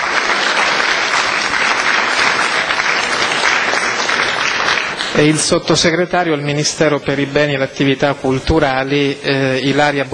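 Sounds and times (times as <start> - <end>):
audience applause: 0.0 - 5.8
speech: 5.2 - 10.1.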